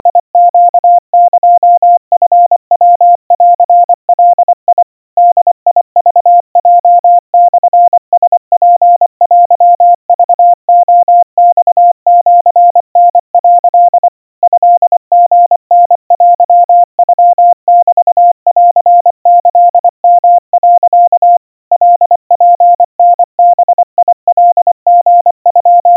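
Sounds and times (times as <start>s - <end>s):
crispy Morse code tones at 90 cpm and 700 Hz: 0.0s - 25.9s.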